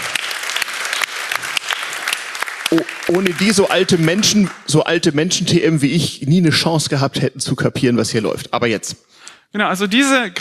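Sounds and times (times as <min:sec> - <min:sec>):
audience clapping: 0:00.0 - 0:05.6
speech: 0:02.7 - 0:10.4.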